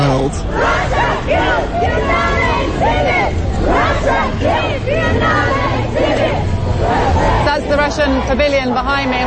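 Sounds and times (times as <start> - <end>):
constant low rumble: 0.0 - 9.2
group of protesters shouting rhythmic chants: 0.0 - 9.2
speech: 0.2 - 1.9, 7.8 - 9.2.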